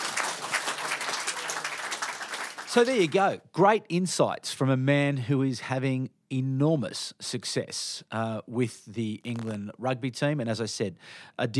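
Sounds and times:
audience applause: 0:00.0 - 0:03.2
speech: 0:02.8 - 0:11.5.

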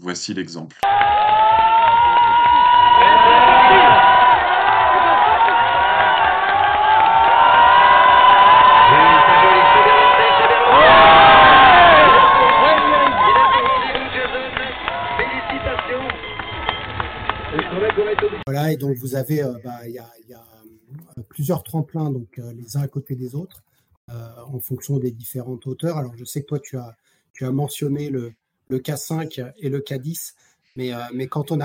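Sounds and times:
speech: 0:00.1 - 0:01.6, 0:18.7 - 0:20.5, 0:21.4 - 0:23.7, 0:24.5 - 0:31.6
ski jump spectator crowd cheering outdoors: 0:00.8 - 0:18.5.

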